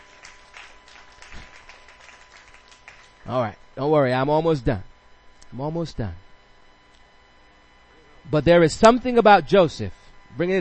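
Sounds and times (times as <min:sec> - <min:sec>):
church congregation clapping in a clap offering: 0:00.0 - 0:03.2
speech: 0:03.2 - 0:04.9, 0:05.5 - 0:06.2, 0:08.3 - 0:10.5.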